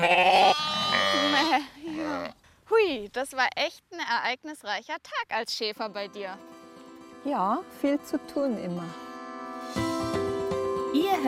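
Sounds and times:
sheep bleating: 0.0 - 2.3
speech: 2.7 - 6.6, 7.2 - 9.9, 10.9 - 11.2.

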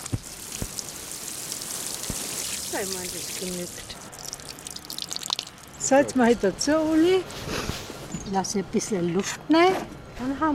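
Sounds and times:
water pouring onto soil of a freshly planted seedling: 0.0 - 5.8
speech: 2.7 - 4.1, 5.8 - 10.5.

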